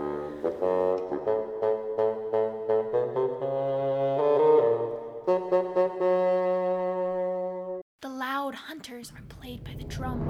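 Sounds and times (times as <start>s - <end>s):
bassoon playing a gruff bouncing melody: 0.0s - 7.8s.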